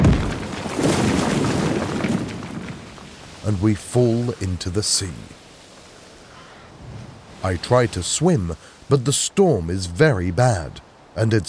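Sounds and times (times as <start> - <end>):
boat crashing into a rock: 0.0 - 3.2
speech: 3.4 - 5.4, 7.4 - 11.4.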